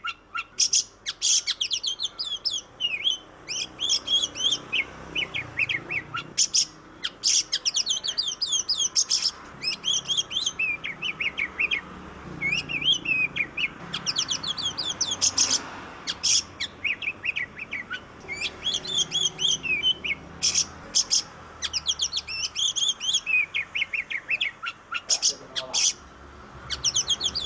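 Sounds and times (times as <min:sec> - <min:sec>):
Oriental magpie-robin singing tutor song in tembakan style: 0:00.0 - 0:27.4.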